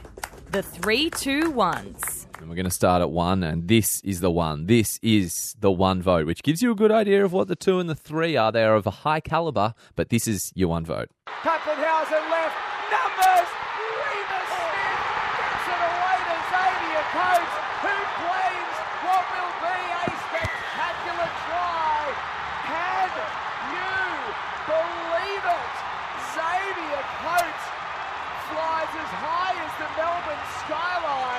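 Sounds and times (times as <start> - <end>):
speech: 0.5 - 13.6
huge stadium crowd roaring and cheering: 11.3 - 31.3
excited voice shouting: 11.5 - 27.6.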